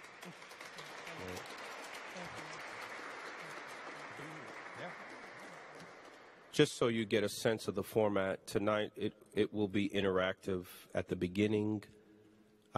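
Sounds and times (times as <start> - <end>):
audience applause welcoming guests to a panel event on justice: 0.0 - 6.6
speech: 6.6 - 12.0.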